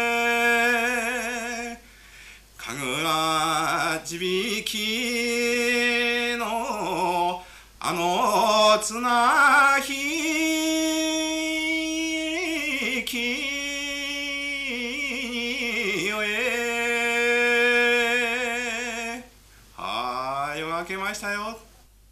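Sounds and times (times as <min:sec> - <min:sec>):
Japanese minyo folk song singing in Minamiboso: 0:00.0 - 0:21.7.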